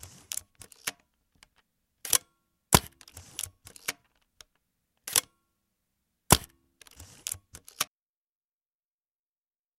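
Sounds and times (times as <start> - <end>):
Minolta X-700 camera: 0.0 - 1.0, 2.8 - 4.0, 5.1 - 5.3, 6.3 - 7.9.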